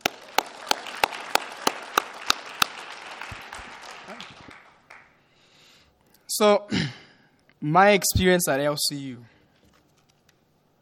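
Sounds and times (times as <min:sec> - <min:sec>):
audience clapping: 0:00.0 - 0:05.2
speech: 0:06.4 - 0:07.0, 0:07.6 - 0:09.4.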